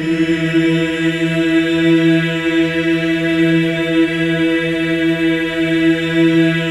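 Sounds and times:
male choir singing: 0.0 - 6.6.

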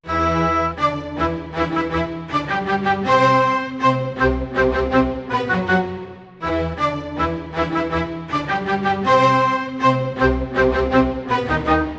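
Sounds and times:
orchestral arrangement in E minor: 0.0 - 11.9.

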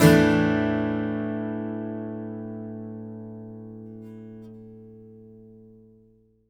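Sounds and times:
acoustic guitar sus chord: 0.0 - 6.3.

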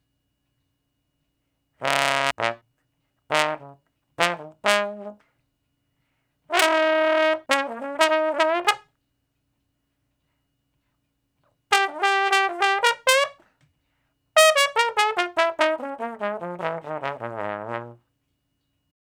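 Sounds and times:
trombone in B flat: 1.8 - 2.6, 3.3 - 5.2, 6.5 - 8.8, 11.7 - 13.4, 14.4 - 18.0.

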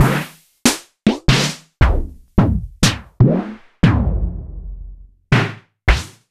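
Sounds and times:
Sonor Mini Mammut drum module: 0.0 - 6.3.

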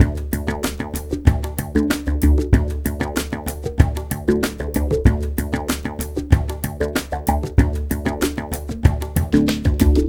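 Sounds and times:
liquid groove music: 0.0 - 10.0.

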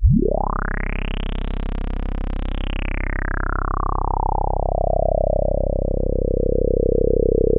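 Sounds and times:
TS10 analog synthesizer: 0.0 - 7.5.

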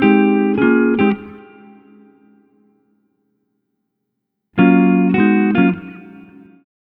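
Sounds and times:
swing guitar in G sharp: 0.0 - 1.7, 4.6 - 6.4.

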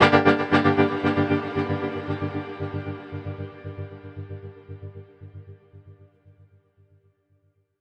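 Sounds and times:
guitar chords in G: 0.0 - 5.0.

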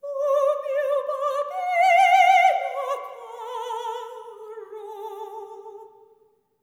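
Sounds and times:
soprano voices singing: 0.0 - 6.1.

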